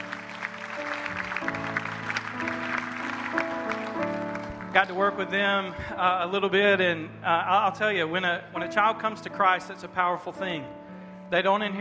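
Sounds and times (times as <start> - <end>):
crowd clapping: 0.0 - 5.2
keyboard or organ chords: 0.0 - 11.7
speech: 4.8 - 11.7.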